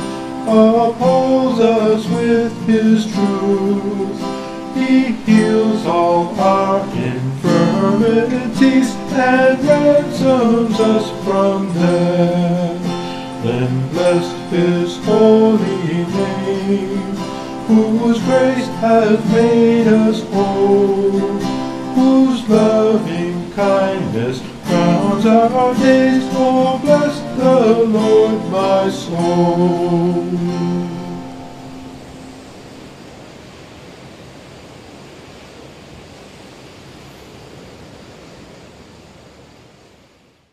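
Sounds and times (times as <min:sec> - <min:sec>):
choir singing: 0:00.0 - 0:31.4.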